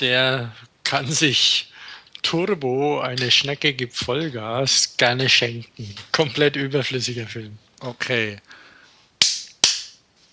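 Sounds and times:
speech: 0.0 - 8.6
hand claps: 9.2 - 10.0.

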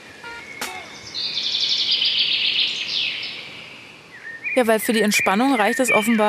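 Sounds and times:
birds chirping and singing: 0.0 - 6.2
sharp click: 0.6 - 0.8
speech: 4.6 - 6.2.

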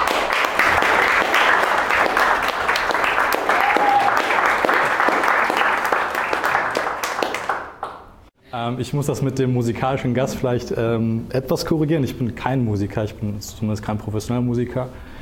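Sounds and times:
audience applause: 0.0 - 8.1
speech: 8.7 - 15.1.

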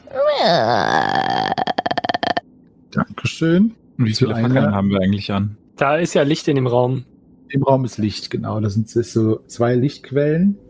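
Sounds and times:
voice imitating a creaking door opening: 0.0 - 2.4
speech: 0.4 - 1.3, 3.4 - 10.6.

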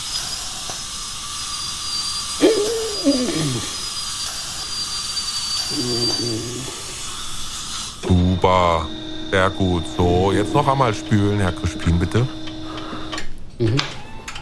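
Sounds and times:
hiss: 0.0 - 8.0
dental drill whining while grinding a tooth: 0.0 - 14.3
speech: 3.0 - 3.8, 5.8 - 6.7, 8.1 - 12.4, 13.6 - 14.0.

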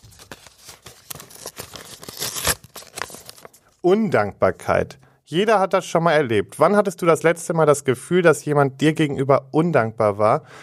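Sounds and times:
paper envelope torn open: 0.0 - 3.7
speech: 3.8 - 10.6.

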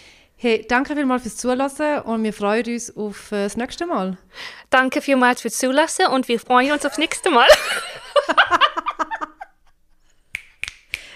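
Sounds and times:
speech: 0.4 - 8.6
laughter: 6.6 - 9.6
finger snapping: 10.3 - 11.1.

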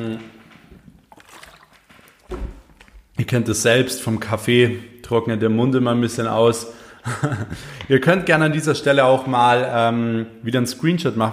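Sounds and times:
speech: 0.0 - 0.4, 3.3 - 11.3
water sloshing: 0.3 - 3.2
person gulping water: 0.7 - 3.2
laughter: 7.0 - 7.9.

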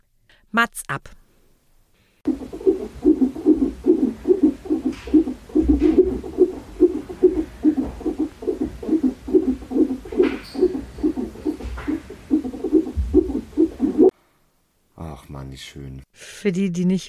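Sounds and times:
speech: 0.5 - 1.2, 15.6 - 17.0
fetal heartbeat picked up by a doppler monitor: 2.3 - 14.1.

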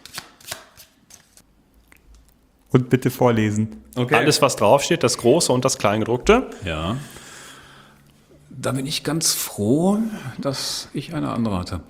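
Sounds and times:
deck of task cards being shuffled: 0.0 - 1.4
speech: 2.7 - 7.2, 8.6 - 11.8.

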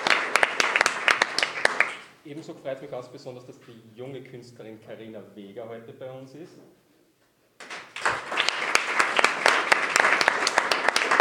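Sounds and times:
audience applause: 0.0 - 2.1, 7.6 - 11.2
speech: 2.3 - 6.8.

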